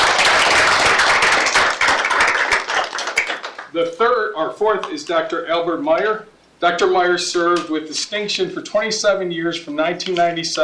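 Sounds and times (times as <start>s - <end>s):
audience applause: 0.0s - 3.7s
speech: 3.8s - 10.6s.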